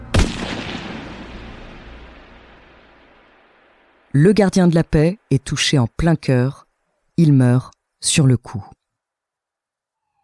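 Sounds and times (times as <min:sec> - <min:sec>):
gunshot fired through a raincoat pocket: 0:00.0 - 0:04.0
speech: 0:04.1 - 0:06.6, 0:07.2 - 0:08.8.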